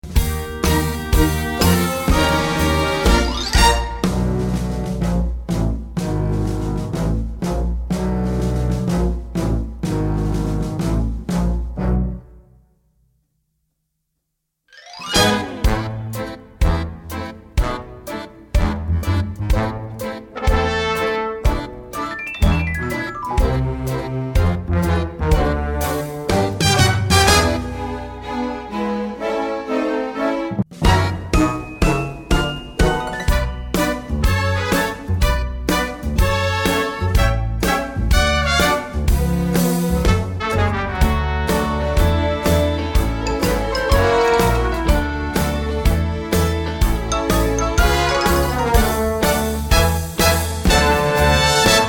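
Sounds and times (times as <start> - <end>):
instrumental music: 0.0 - 12.7, 14.7 - 51.8.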